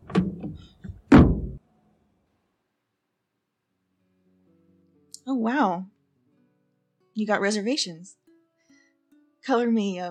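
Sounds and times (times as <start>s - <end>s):
car door unlatching with click and creak: 0.0s - 1.6s
speech: 5.3s - 5.9s, 7.2s - 8.2s, 9.4s - 10.1s.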